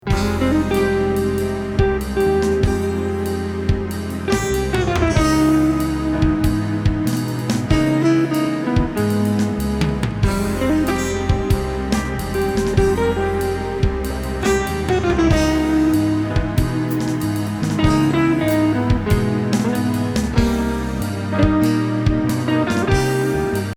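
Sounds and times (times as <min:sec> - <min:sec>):
jazz ballad: 0:00.0 - 0:23.7.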